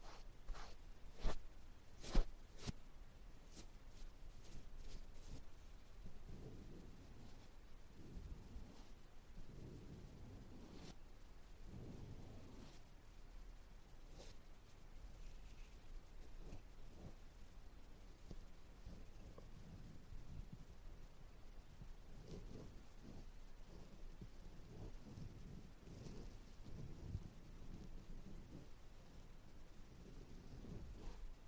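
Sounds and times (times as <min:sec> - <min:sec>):
ear touching soft brushing and rubbing: 0:00.0 - 0:31.4.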